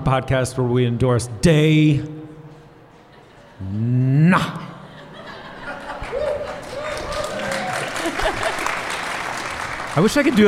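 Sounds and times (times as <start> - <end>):
speech: 0.1 - 2.2, 3.6 - 4.7, 10.0 - 10.4
laughter: 3.0 - 9.0
audience applause: 5.8 - 10.4.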